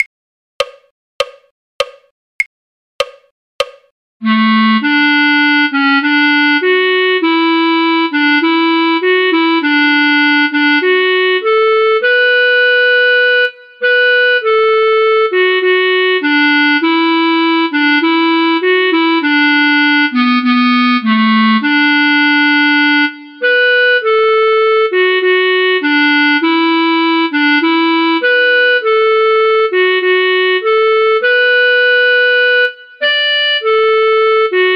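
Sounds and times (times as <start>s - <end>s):
clarinet: 4.2s - 34.7s.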